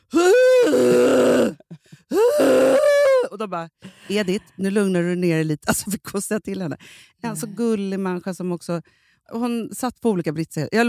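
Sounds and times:
voice imitating an old woman groaning: 0.1 - 3.3
speech: 3.4 - 10.8
short breaths: 3.8 - 4.2, 6.8 - 7.2, 8.8 - 9.3.

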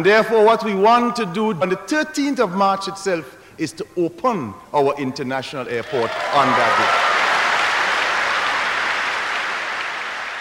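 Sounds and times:
speech: 0.0 - 7.0
audience cheering: 5.8 - 10.3.

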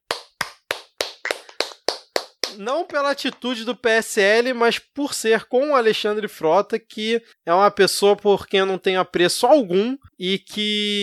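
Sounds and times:
round of applause, clapping: 0.1 - 2.6
speech: 2.5 - 11.0.

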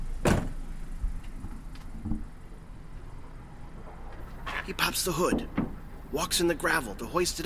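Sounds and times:
truck cab door opening: 0.2 - 0.6, 4.2 - 6.0
speech: 4.7 - 7.4.

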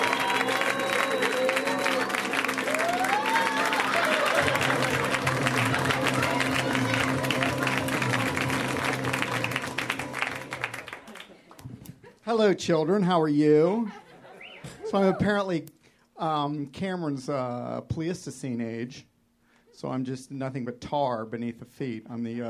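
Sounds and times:
audience applause for a comedian: 0.0 - 11.6
speech: 12.4 - 14.0, 14.9 - 19.1, 19.8 - 22.4.

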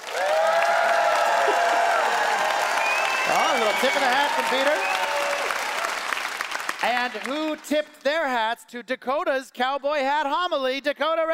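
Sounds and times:
audience applause for vote: 0.0 - 7.6
speech: 3.8 - 5.0, 6.8 - 11.3.

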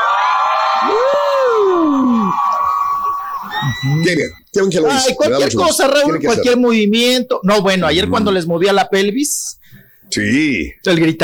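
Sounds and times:
person whooping: 0.0 - 4.4
audience cheering: 0.0 - 5.2
speech: 3.8 - 11.2.

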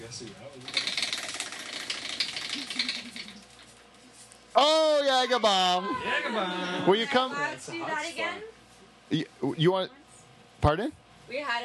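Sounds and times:
speech: 0.1 - 1.1, 2.6 - 3.5, 4.6 - 10.0, 10.6 - 11.6
prize wheel spun in a party game clicking: 0.7 - 3.3.

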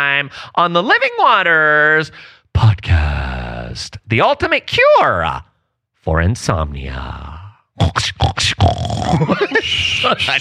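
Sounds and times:
speech: 0.0 - 10.4
pig grunting, snorting and squealing: 7.8 - 9.4
laughter: 9.0 - 10.4.

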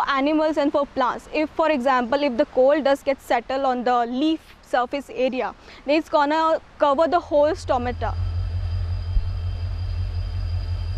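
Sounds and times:
speech: 0.0 - 8.3
deep low hum: 7.3 - 10.9
static hiss of high-voltage power lines: 7.4 - 10.9
thin high whine: 7.4 - 10.9.

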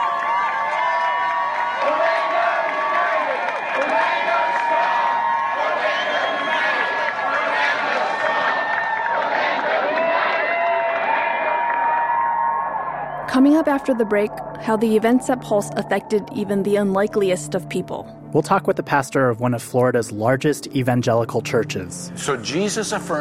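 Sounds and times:
large crowd cheering and roaring: 0.0 - 16.8
speech: 13.4 - 23.1.

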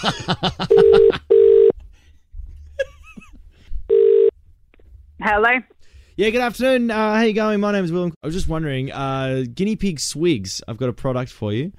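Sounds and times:
speech: 0.0 - 1.2, 5.3 - 11.7
laughter: 0.0 - 1.4
telephone ringback tone on an outgoing call: 0.8 - 1.7, 3.9 - 4.3.

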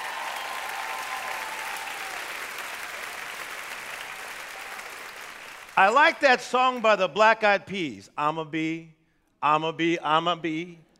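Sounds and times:
audience clapping: 0.0 - 7.2
speech: 5.8 - 10.9.

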